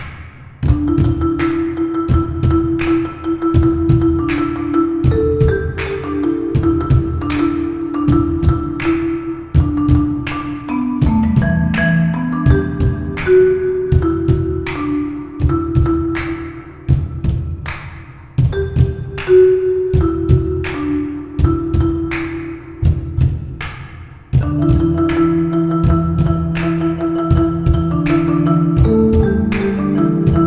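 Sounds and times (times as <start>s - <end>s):
marimba: 0.6s - 30.4s.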